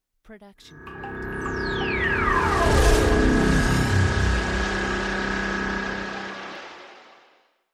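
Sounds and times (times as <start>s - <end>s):
designed magical hit: 0.8s - 7.3s.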